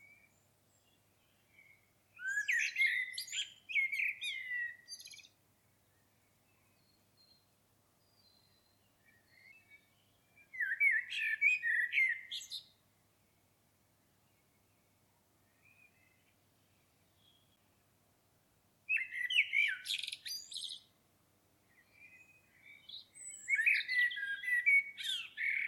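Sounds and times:
common blackbird singing: 0.0s - 7.4s, 8.0s - 12.8s, 18.9s - 20.9s, 21.7s - 25.6s.

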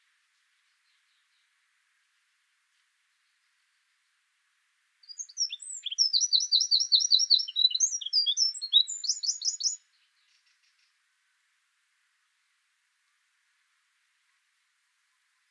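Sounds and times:
Eurasian wren song: 5.1s - 9.8s.

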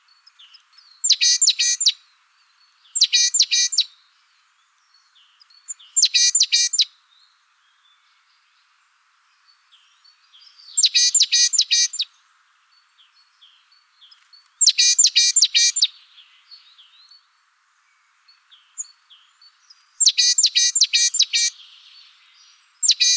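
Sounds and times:
great tit calling: 1.0s - 2.0s, 2.9s - 3.9s, 5.6s - 6.9s, 10.7s - 12.1s, 14.6s - 15.9s, 19.7s - 22.2s, 22.8s - 23.1s.

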